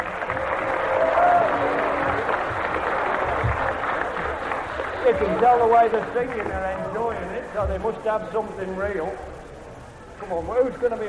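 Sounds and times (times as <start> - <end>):
faint voice or cheer: 0.0 - 5.4
audience applause: 0.0 - 7.6
speech: 5.1 - 9.3, 10.2 - 11.0.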